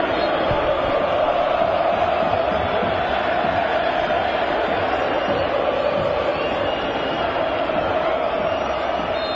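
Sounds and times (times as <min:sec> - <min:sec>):
crowd shouting for the Albirroja: 0:00.0 - 0:09.3.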